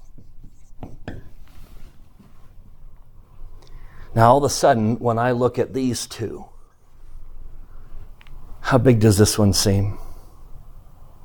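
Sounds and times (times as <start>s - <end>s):
writing on a board: 0.0s - 1.8s
speech: 4.2s - 6.5s, 8.7s - 10.0s.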